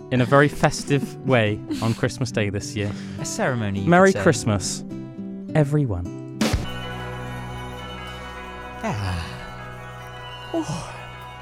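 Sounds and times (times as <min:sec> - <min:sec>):
speech: 0:00.1 - 0:06.2, 0:08.8 - 0:09.4, 0:10.5 - 0:11.0
Christmas song sustained chord: 0:06.6 - 0:11.4.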